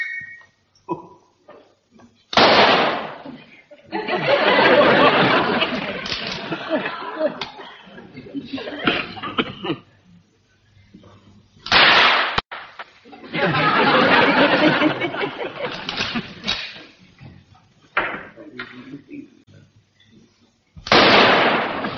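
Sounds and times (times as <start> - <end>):
rifle shots fired at targets: 2.4 - 3.2, 11.7 - 12.7, 20.8 - 21.9
laughter: 3.2 - 9.9, 13.0 - 17.0.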